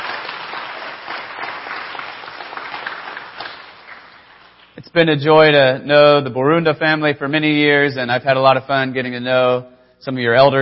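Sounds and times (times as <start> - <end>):
audience clapping: 0.0 - 4.8
speech: 4.9 - 10.6.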